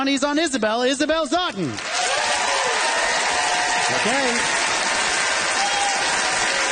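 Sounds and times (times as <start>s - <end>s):
speech: 0.0s - 2.3s, 3.9s - 4.6s
audience applause for a contestant at a debate-style event: 1.8s - 6.7s.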